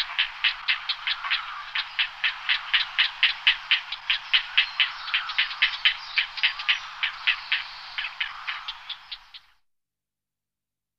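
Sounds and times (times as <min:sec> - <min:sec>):
grey heron calling in flight: 0:00.0 - 0:09.5
grey heron colony: 0:00.0 - 0:09.6.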